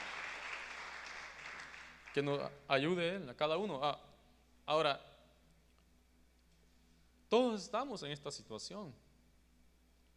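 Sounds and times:
audience clapping applause: 0:00.0 - 0:02.5
speech: 0:02.1 - 0:04.1, 0:04.7 - 0:05.1, 0:07.3 - 0:09.0.

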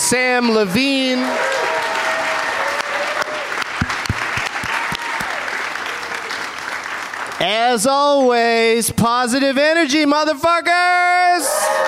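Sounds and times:
live audience applauding: 0:00.0 - 0:08.2
speech: 0:00.1 - 0:01.5, 0:07.4 - 0:11.8
faint whoops: 0:01.2 - 0:03.6, 0:04.6 - 0:06.4, 0:11.4 - 0:11.8.

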